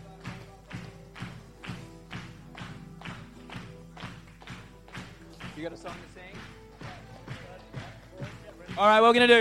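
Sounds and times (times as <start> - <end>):
audience clapping: 0.0 - 9.3
speech: 5.6 - 6.3, 8.8 - 9.3.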